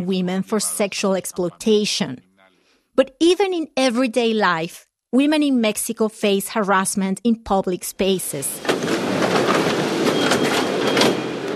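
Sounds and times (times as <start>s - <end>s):
speech: 0.0s - 2.3s, 3.0s - 9.5s
subway train rolling along tracks heard from inside the moving car: 8.6s - 11.5s.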